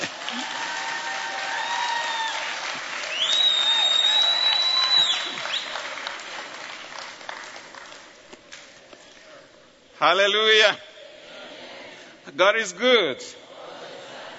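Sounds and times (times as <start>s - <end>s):
church congregation applauding a pastor: 0.0s - 8.6s
speech: 10.0s - 10.9s, 12.3s - 13.4s.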